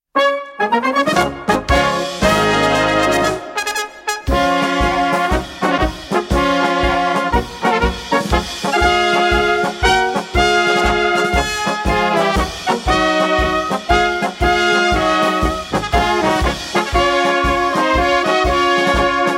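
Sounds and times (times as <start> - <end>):
polka music: 0.2 - 19.3.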